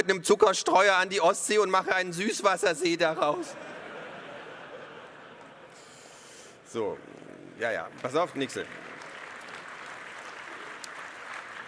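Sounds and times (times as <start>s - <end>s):
speech: 0.0s - 3.7s, 6.7s - 8.8s
laughter: 1.6s - 6.3s
crowd clapping: 7.6s - 11.6s.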